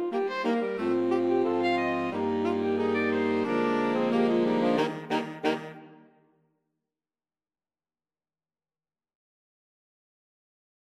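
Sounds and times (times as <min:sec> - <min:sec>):
saxophone ensemble: 0:00.0 - 0:06.2.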